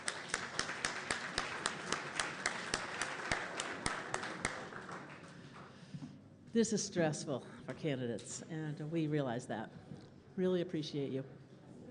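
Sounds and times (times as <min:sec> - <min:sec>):
audience applause: 0:00.0 - 0:05.8
speech: 0:06.6 - 0:09.8, 0:10.4 - 0:11.4.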